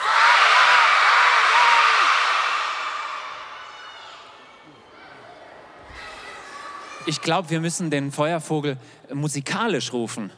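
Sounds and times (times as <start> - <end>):
audience shouting a name together: 0.0 - 7.0
speech: 7.1 - 10.3.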